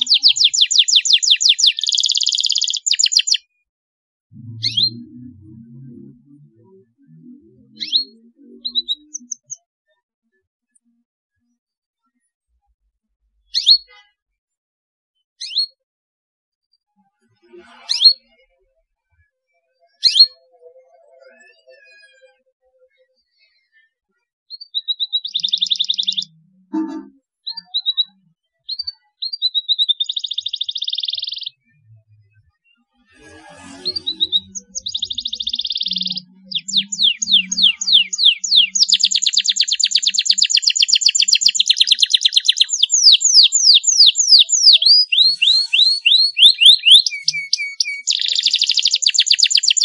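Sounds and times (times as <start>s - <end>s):
Belgian canary chirping and trilling: 0.0s - 3.5s, 4.3s - 9.6s, 13.3s - 14.0s, 15.4s - 15.8s, 17.4s - 18.4s, 19.8s - 22.4s, 24.5s - 49.8s
low rumble: 4.4s - 6.6s.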